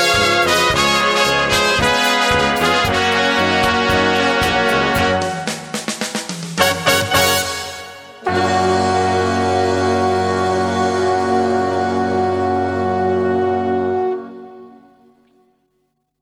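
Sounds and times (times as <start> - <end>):
trumpets playing rumba: 0.0 - 14.9.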